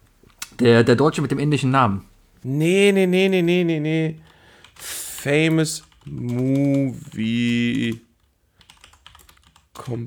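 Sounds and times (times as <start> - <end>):
speech: 0.6 - 8.1, 9.8 - 10.0
typing on a computer keyboard: 4.2 - 10.0.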